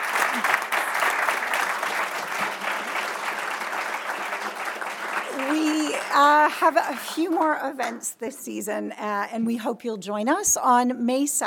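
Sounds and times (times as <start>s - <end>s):
audience applause for speakers: 0.0s - 8.0s
speech: 6.5s - 11.4s.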